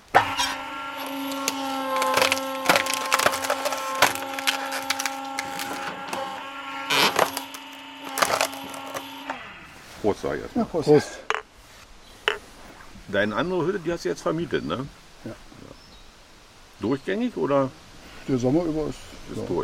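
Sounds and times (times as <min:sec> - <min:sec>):
hydraulic log splitter engine hum: 0:00.0 - 0:10.0
speech: 0:10.0 - 0:11.2, 0:13.1 - 0:15.4, 0:16.8 - 0:19.6.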